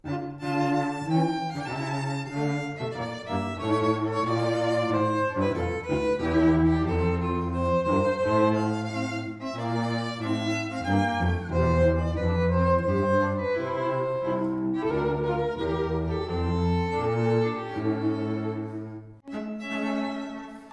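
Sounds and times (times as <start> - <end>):
musical trio: 0.0 - 20.7.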